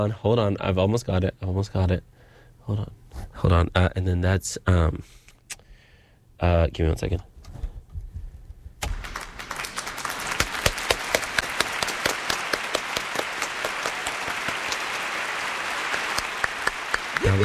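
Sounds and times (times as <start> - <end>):
speech: 0.0 - 5.2, 6.4 - 7.3
crowd applause: 8.9 - 17.4.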